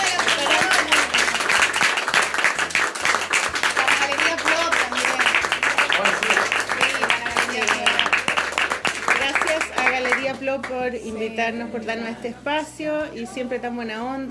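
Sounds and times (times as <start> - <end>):
audience applause: 0.0 - 10.7
speech: 10.9 - 14.2.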